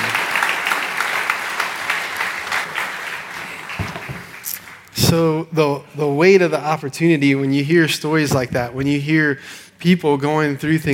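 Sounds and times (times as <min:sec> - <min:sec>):
room full of people applauding: 0:00.0 - 0:04.9
speech: 0:05.1 - 0:10.9.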